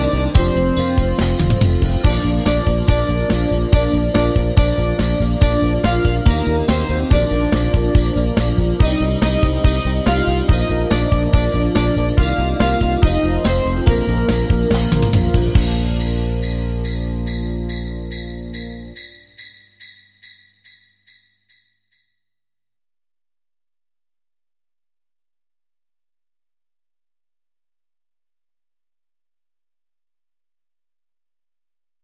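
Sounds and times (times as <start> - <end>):
sleigh bells jingling quickly: 0.0 - 22.1.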